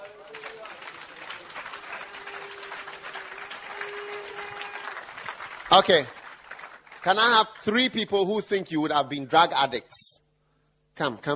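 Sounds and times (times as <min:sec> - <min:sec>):
cheers: 0:00.0 - 0:05.8
crowd clapping: 0:00.0 - 0:08.3
speech: 0:05.7 - 0:06.2, 0:07.0 - 0:10.2, 0:11.0 - 0:11.3.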